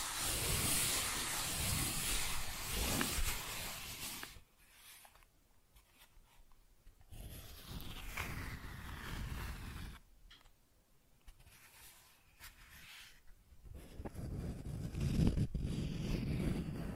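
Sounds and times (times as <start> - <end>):
cardboard being scratched and scraped: 0.0 - 5.2, 7.1 - 10.0, 11.6 - 16.9.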